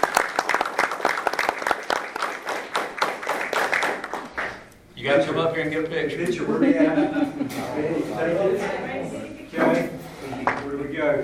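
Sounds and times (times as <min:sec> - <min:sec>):
round of applause: 0:00.0 - 0:04.7
speech: 0:05.0 - 0:09.0, 0:09.6 - 0:10.0, 0:10.8 - 0:11.2
laughter: 0:06.2 - 0:08.5.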